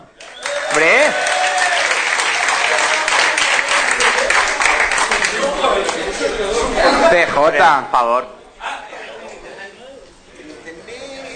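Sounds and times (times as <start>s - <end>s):
audience applause: 0.2s - 6.1s
crowd chatter: 2.6s - 11.3s
speech: 7.1s - 8.4s.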